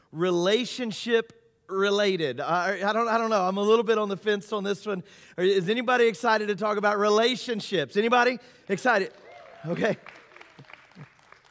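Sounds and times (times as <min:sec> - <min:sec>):
speech: 0:00.1 - 0:10.2
thin scattered clapping from a few audience members: 0:09.0 - 0:11.4
shout or whoop from the crowd: 0:09.1 - 0:11.2.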